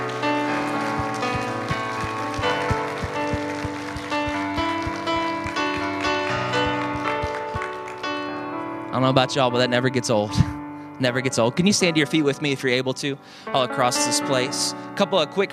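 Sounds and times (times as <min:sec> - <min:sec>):
audience clapping hands: 0:00.0 - 0:08.2
sustained keyboard chords: 0:00.0 - 0:15.5
speech: 0:09.0 - 0:15.5.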